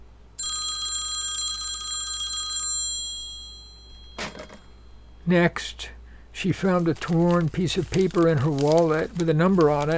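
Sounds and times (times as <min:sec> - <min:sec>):
telephone bell ringing unanswered: 0:00.4 - 0:05.2
speech: 0:05.3 - 0:09.9.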